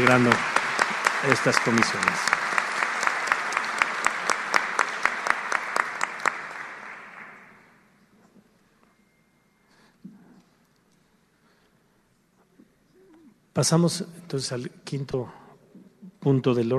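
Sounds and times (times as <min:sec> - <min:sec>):
speech: 0:00.0 - 0:00.5, 0:01.2 - 0:02.4, 0:13.6 - 0:15.4, 0:16.2 - 0:16.7
audience applause: 0:00.0 - 0:07.7.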